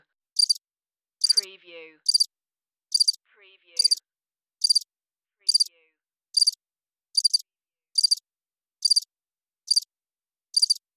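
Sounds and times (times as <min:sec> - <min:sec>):
cricket chirping: 0:00.4 - 0:00.6, 0:02.0 - 0:02.3, 0:02.9 - 0:03.2, 0:03.8 - 0:04.0, 0:04.6 - 0:04.9, 0:05.5 - 0:05.7, 0:06.4 - 0:06.6, 0:07.2 - 0:07.4, 0:08.0 - 0:08.2, 0:08.8 - 0:09.1, 0:09.7 - 0:09.9, 0:10.6 - 0:10.8
speech: 0:01.4 - 0:02.2.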